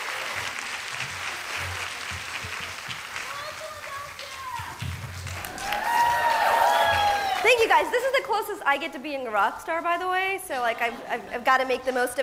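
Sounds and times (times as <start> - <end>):
audience applause welcoming a speaker: 0.0 - 8.0
speech: 7.6 - 12.2.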